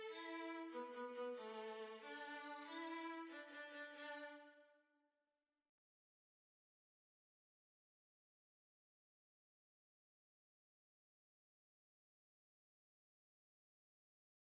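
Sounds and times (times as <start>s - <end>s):
violin playing a quadrille: 0.0s - 4.6s.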